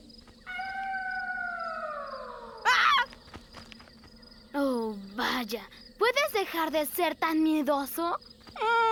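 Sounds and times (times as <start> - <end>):
wolf howl sound effect: 0.5 - 3.1
speech: 5.4 - 8.8.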